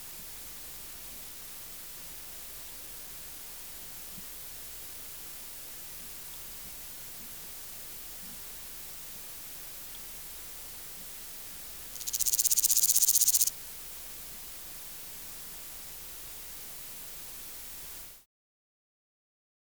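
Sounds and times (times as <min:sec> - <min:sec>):
soft hiss: 0:00.0 - 0:18.2
Omocestus bolivari grasshopper buzzy song: 0:10.7 - 0:18.2.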